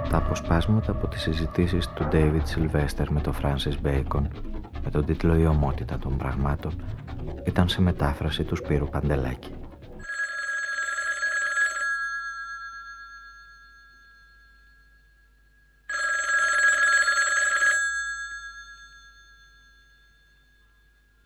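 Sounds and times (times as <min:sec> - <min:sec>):
speech: 0:00.1 - 0:09.6
telephone ringing with electronic trills: 0:10.0 - 0:14.5, 0:15.9 - 0:20.5.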